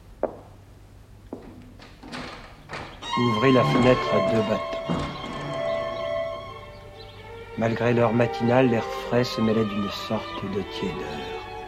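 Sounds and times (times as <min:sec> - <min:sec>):
door closing: 0:01.4 - 0:06.9
speech: 0:03.2 - 0:05.3, 0:07.6 - 0:11.4.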